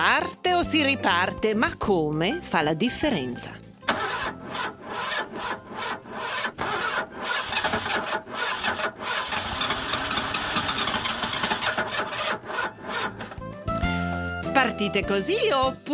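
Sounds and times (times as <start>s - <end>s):
speech: 0.0s - 3.6s, 14.7s - 15.9s
car engine cranking, starting and idling: 3.8s - 13.4s.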